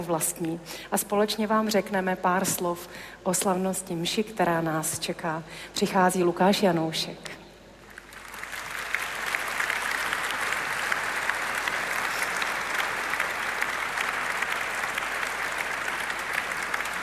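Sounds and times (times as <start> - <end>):
speech: 0.0 - 7.4
audience applause: 7.9 - 17.0.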